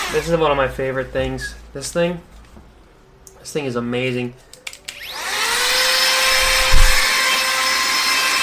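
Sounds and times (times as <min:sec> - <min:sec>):
speech: 0:00.1 - 0:02.3, 0:03.5 - 0:04.5
rechargeable handheld electric air blower whining: 0:05.0 - 0:08.3
low thump: 0:05.7 - 0:07.1.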